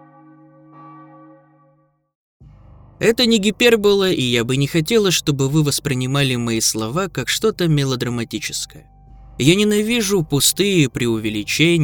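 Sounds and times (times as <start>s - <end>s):
church bell ringing: 0.0s - 1.9s
speech: 3.0s - 11.8s.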